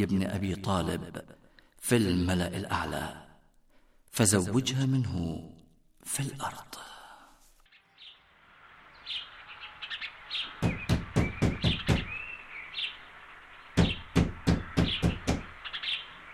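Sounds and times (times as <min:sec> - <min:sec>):
speech: 0:00.0 - 0:03.2, 0:04.1 - 0:06.9
birds chirping: 0:07.6 - 0:16.3
knocking on a door: 0:10.6 - 0:12.2, 0:13.8 - 0:15.5.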